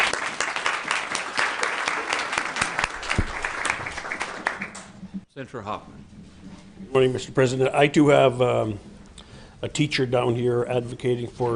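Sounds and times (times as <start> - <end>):
audience applause welcoming a guest: 0.0 - 5.0
speech: 5.4 - 6.2, 6.8 - 8.9, 9.6 - 11.5.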